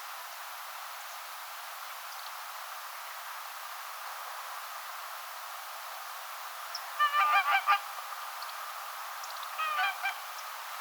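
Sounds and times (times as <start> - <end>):
whooper swan calls: 7.0 - 7.9, 9.6 - 10.2.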